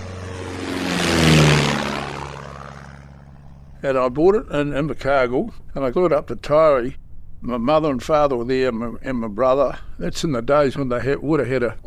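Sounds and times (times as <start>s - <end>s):
Tiger Moth biplane engine and propeller: 0.0s - 11.8s
speech: 3.8s - 11.8s.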